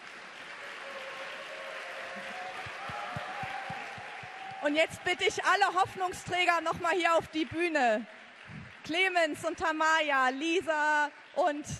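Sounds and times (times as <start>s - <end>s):
audience applause: 0.0s - 9.4s
speech: 4.6s - 8.2s, 8.8s - 11.7s.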